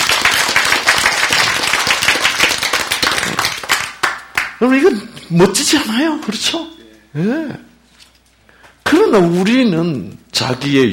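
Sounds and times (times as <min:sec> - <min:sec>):
audience applause: 0:00.0 - 0:04.6
speech: 0:04.6 - 0:07.7, 0:09.1 - 0:10.9.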